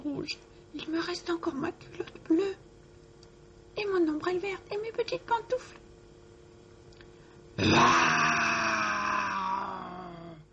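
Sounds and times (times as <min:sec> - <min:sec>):
speech: 0:00.2 - 0:02.7, 0:04.0 - 0:05.8
tiger growling and roaring: 0:07.6 - 0:10.4.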